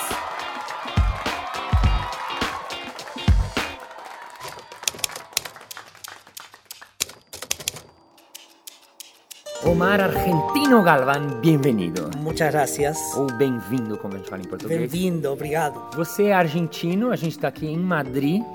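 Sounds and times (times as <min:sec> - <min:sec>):
small group clapping: 0:00.0 - 0:09.5
speech: 0:09.7 - 0:18.5.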